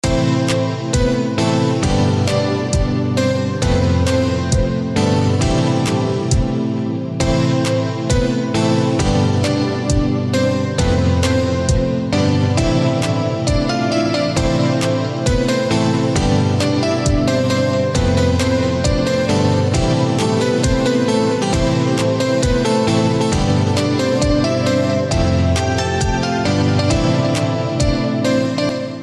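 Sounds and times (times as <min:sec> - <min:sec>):
piano melody: 0:00.0 - 0:29.0.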